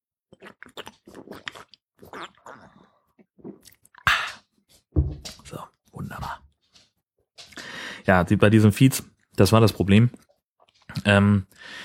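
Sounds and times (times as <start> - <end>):
gulping and swallowing beer: 0.3 - 4.5
speech: 8.0 - 10.3, 11.0 - 11.8.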